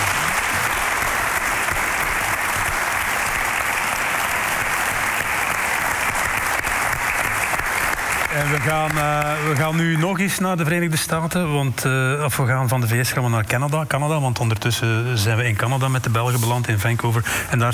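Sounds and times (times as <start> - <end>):
studio audience applause: 0.0 - 10.9
speech: 8.4 - 17.7.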